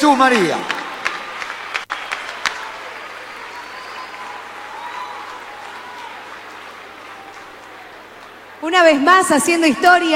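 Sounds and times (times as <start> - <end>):
speech: 0.0 - 0.8, 8.7 - 10.1
applause from a sizable audience: 0.0 - 8.7
faint crowd murmur: 0.9 - 8.7.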